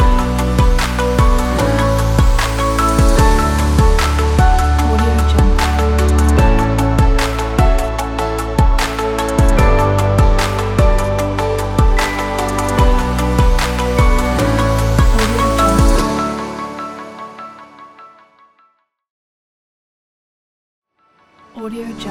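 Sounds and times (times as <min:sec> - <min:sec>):
happy corporate piano music: 0:00.0 - 0:17.2.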